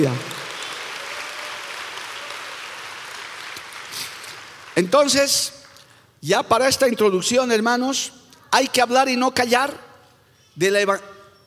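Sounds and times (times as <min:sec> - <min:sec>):
speech: 0:00.0 - 0:00.4, 0:04.8 - 0:05.6, 0:06.2 - 0:09.9, 0:10.6 - 0:11.1
audience applause: 0:00.0 - 0:05.8.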